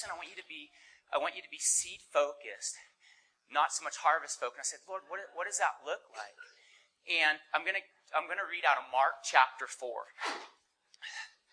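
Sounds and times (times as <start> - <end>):
speech: 0.0 - 11.3
person sneezing: 10.2 - 11.3.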